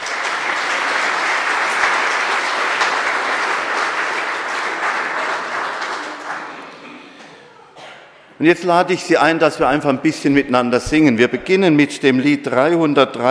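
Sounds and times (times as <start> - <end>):
audience applause: 0.0 - 7.2
speech: 8.4 - 13.3.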